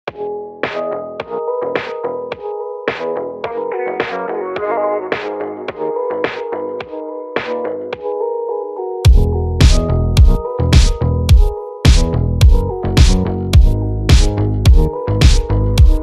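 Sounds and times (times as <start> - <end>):
instrumental ringtone: 0.2 - 16.0.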